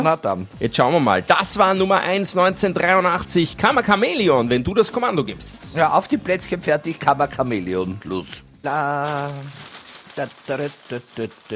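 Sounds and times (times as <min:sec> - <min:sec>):
speech: 0:00.0 - 0:11.5
rustling: 0:09.0 - 0:11.5.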